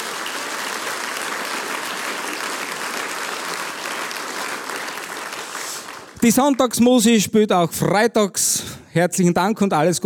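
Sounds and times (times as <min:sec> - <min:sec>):
audience applause: 0:00.0 - 0:06.3
speech: 0:06.2 - 0:10.0.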